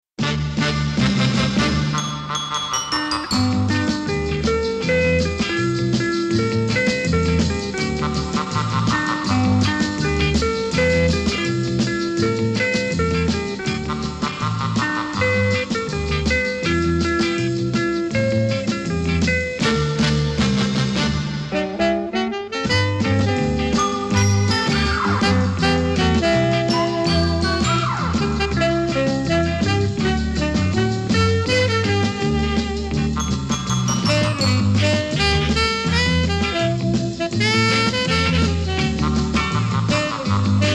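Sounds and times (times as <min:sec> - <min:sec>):
instrumental music: 0:00.2 - 0:40.7.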